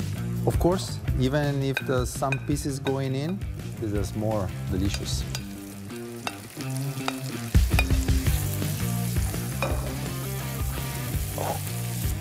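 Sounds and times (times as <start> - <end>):
soft music: 0.0 - 12.1
speech: 0.4 - 5.4
vegetables sizzling as they fry in a pan: 4.4 - 12.1.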